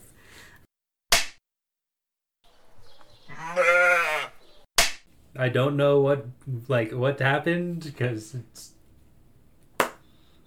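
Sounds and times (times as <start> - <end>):
hand clap: 1.1 - 1.4, 4.8 - 5.0, 9.8 - 10.0
speech: 5.4 - 8.8.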